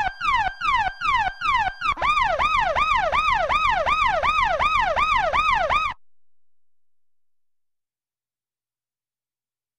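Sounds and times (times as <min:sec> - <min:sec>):
close yelper siren: 0:00.0 - 0:06.0.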